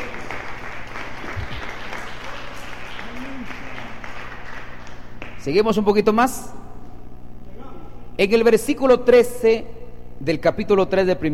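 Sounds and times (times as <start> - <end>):
audience applause: 0.0 - 5.4
speech: 5.4 - 6.6, 8.2 - 11.3.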